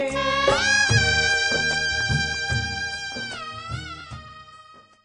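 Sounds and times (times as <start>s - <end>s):
Navaratri bhakti devotional ringtone: 0.1s - 5.0s.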